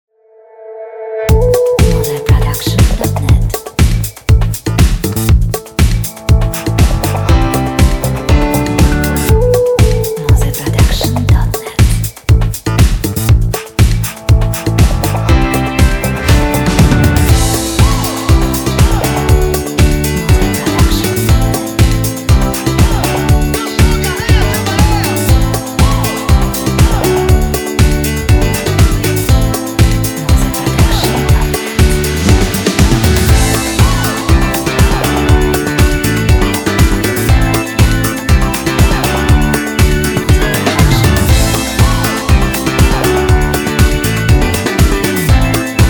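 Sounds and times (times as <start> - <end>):
upbeat and uplifting pop funk music: 1.2 - 45.8.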